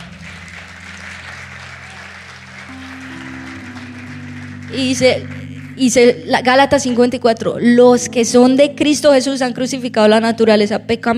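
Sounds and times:
audience applause: 0:00.0 - 0:05.9
speech: 0:04.7 - 0:11.1.

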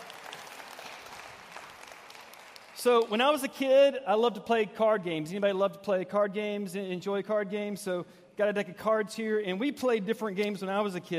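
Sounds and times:
audience applause: 0:00.0 - 0:03.2
speech: 0:02.8 - 0:11.1.

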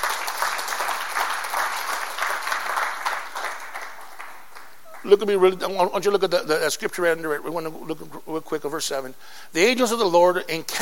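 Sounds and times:
audience clapping: 0:00.0 - 0:05.3
speech: 0:05.0 - 0:10.7.

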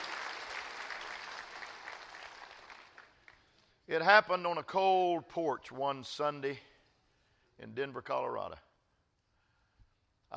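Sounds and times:
audience clapping: 0:00.0 - 0:03.6
speech: 0:03.9 - 0:06.7, 0:07.6 - 0:08.7.

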